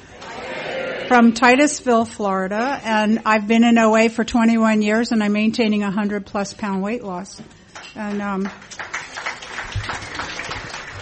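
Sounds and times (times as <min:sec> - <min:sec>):
speech: 0:01.1 - 0:08.9
Overeaters Anonymous meeting audience clapping: 0:07.8 - 0:11.0.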